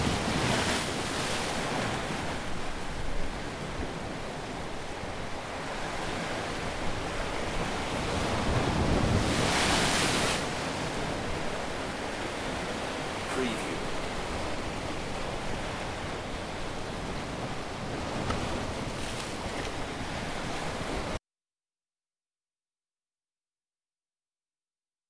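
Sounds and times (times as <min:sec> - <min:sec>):
waves on a Spanish beach: 0:00.0 - 0:21.2.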